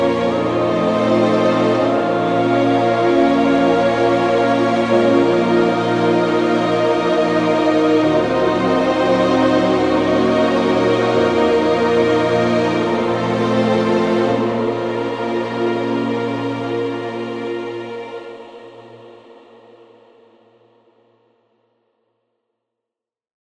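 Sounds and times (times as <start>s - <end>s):
sad cinematic music: 0.0s - 18.7s.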